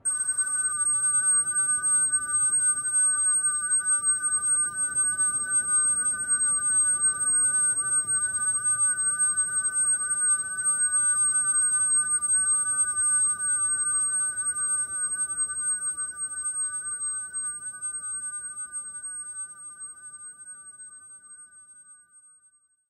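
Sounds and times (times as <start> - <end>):
tinnitus ringing tone: 0.0 - 22.8.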